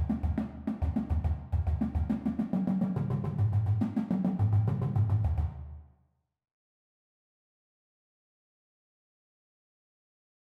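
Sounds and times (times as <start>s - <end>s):
shuffle percussion: 0.0s - 5.7s.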